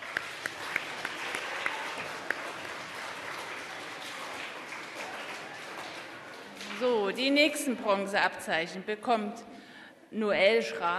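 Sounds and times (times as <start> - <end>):
loud applause: 0.0 - 7.2
speech: 6.8 - 10.9.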